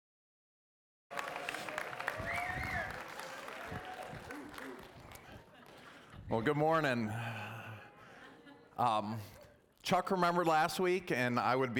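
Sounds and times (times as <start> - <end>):
audience applauding a speaker at a morning church service: 1.1 - 6.1
crowd noise: 1.1 - 6.9
speech: 6.3 - 7.4, 8.8 - 11.7.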